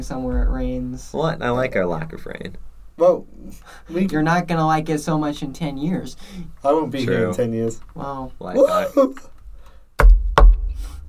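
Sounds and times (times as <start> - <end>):
speech: 0.0 - 9.3
hand knocking on a composite fiberboard surface: 10.0 - 10.7.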